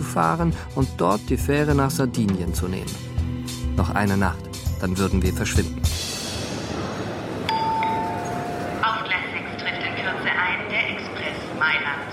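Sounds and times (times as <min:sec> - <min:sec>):
speech: 0:00.2 - 0:03.1, 0:03.8 - 0:06.0
train arriving at a busy train station: 0:05.4 - 0:12.1
people chattering at a train station: 0:06.4 - 0:12.1
sustained high-pitched ringing tone: 0:07.5 - 0:10.0.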